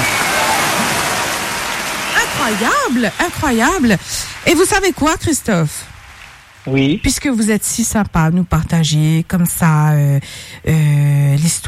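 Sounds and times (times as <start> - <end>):
applause: 0.0 - 6.5
speech: 2.5 - 5.9, 6.6 - 11.6.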